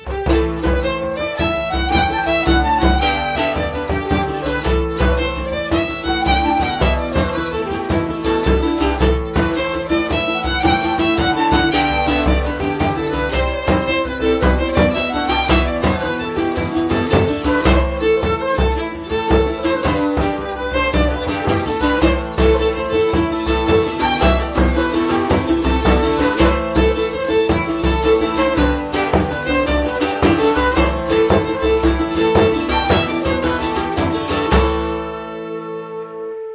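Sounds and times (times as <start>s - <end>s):
orchestra ambience: 0.2s - 36.5s.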